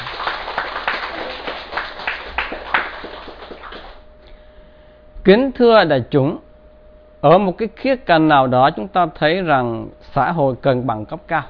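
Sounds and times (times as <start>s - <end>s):
crowd clapping: 0.0s - 4.0s
speech: 5.2s - 6.4s, 7.2s - 11.4s.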